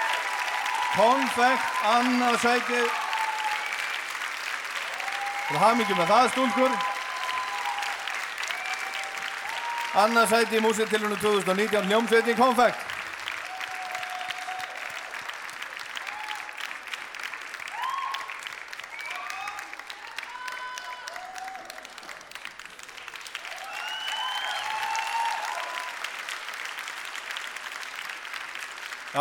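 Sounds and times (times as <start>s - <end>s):
crowd applauding: 0.0s - 29.1s
speech: 0.9s - 3.0s, 5.5s - 6.9s, 10.0s - 12.8s
whoops and whistles: 23.6s - 25.5s.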